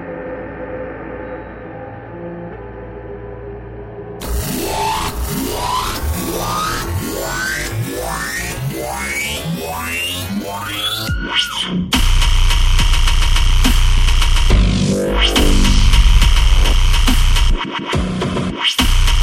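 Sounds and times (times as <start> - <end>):
dubstep hit: 4.2 - 19.2.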